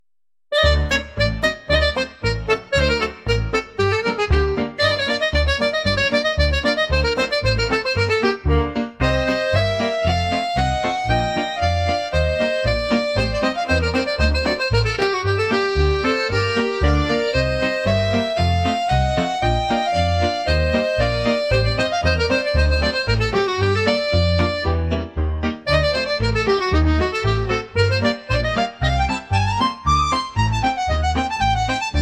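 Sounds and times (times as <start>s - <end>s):
klezmer music: 0.5s - 32.0s.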